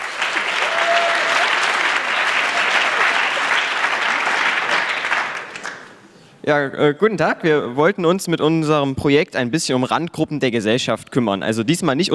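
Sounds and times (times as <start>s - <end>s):
audience applause: 0.0s - 6.0s
speech: 6.4s - 12.1s.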